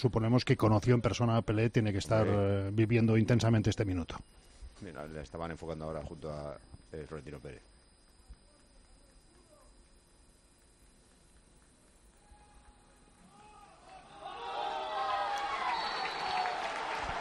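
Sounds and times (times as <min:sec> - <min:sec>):
speech: 0:00.0 - 0:07.7
stadium crowd cheering for its team at a nearly full football ground: 0:13.2 - 0:17.1.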